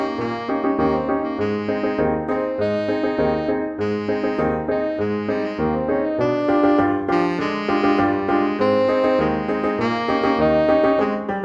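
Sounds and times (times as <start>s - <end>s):
tenor saxophone playing a circus march: 0.0s - 11.3s.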